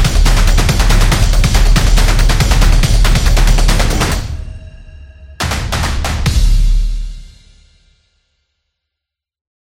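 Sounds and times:
sport percussion background music for action and competition: 0.0s - 4.8s, 5.4s - 7.8s.

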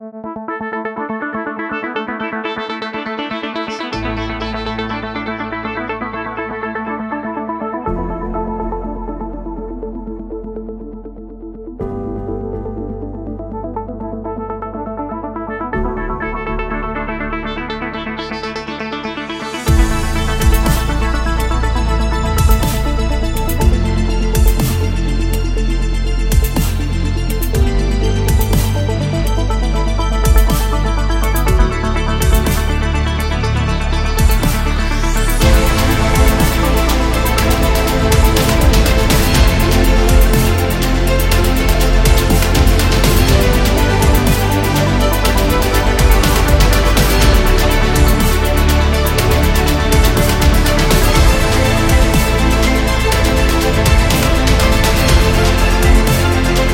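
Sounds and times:
futuristic background music: 0.0s - 56.7s.

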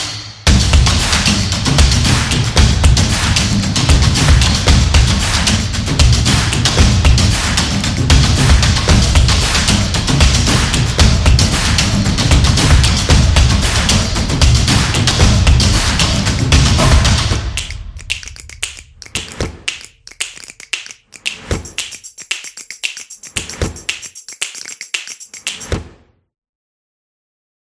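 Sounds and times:
percussive drums: 0.0s - 17.6s.

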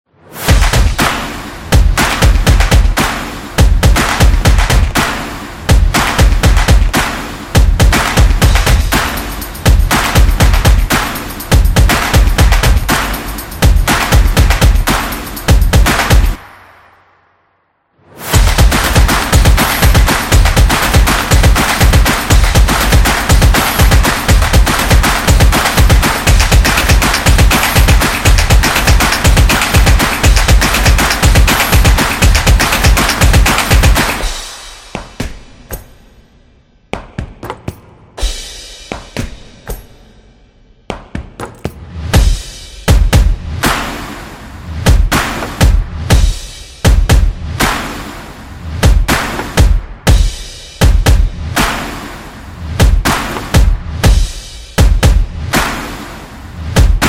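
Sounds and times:
drumming: 0.4s - 16.6s, 18.3s - 35.9s, 40.9s - 57.0s
people clapping: 0.6s - 16.4s, 18.4s - 34.2s, 45.1s - 45.6s, 53.1s - 53.6s, 55.5s - 56.0s.

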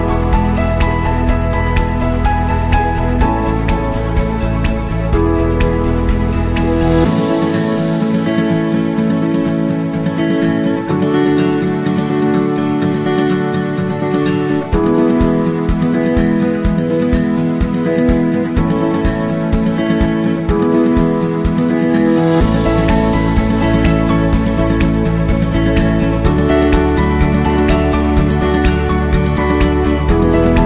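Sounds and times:
happy uplifting acoustic guitar music: 0.0s - 30.6s.

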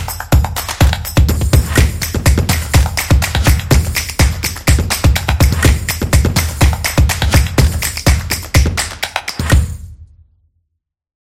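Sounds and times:
vlog opener music: 0.0s - 8.8s.

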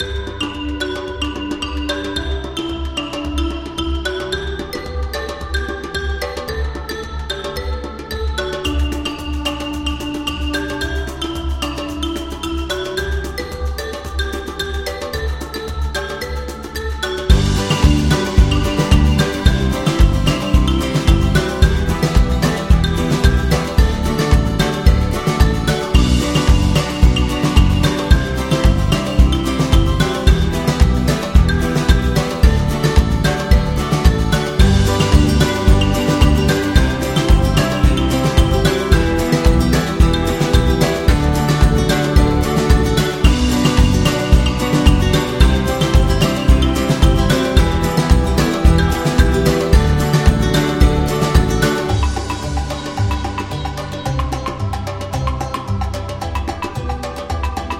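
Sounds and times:
upbeat African music: 0.0s - 57.7s.

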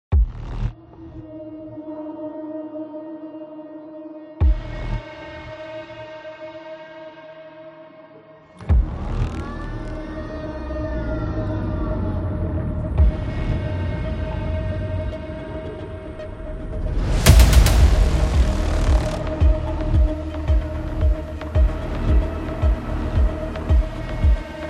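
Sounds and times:
intense hybrid trailer music: 4.4s - 6.4s, 8.4s - 24.6s.

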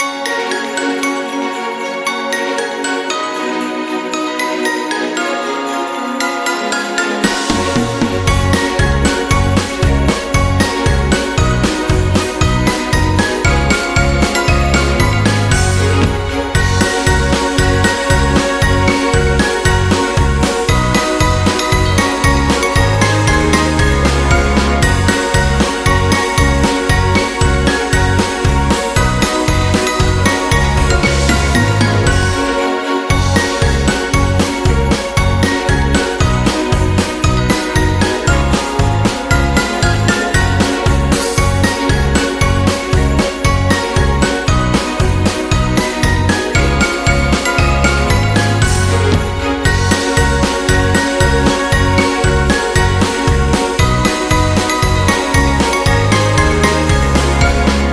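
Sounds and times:
Christmas song: 0.0s - 57.9s.

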